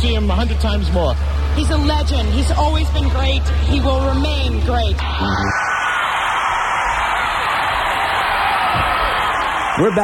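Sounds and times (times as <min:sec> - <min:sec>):
speech: 0:00.1 - 0:05.6, 0:09.8 - 0:10.0
sold-out arena concert crowd cheering: 0:00.1 - 0:10.0
whoops and shouts: 0:05.0 - 0:10.0.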